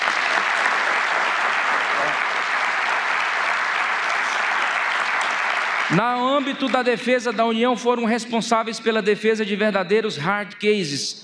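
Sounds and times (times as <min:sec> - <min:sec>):
audience applause: 0:00.0 - 0:07.0
speech: 0:05.9 - 0:11.2.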